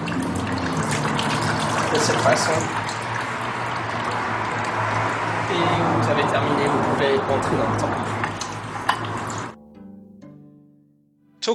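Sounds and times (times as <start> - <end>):
leftover water pouring onto a handle: 0.0 - 9.6
speech: 2.0 - 2.9, 5.8 - 8.2.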